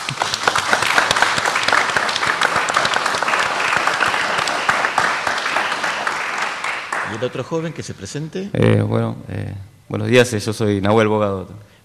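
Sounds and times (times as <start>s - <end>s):
applause: 0.0s - 7.6s
speech: 7.2s - 11.7s.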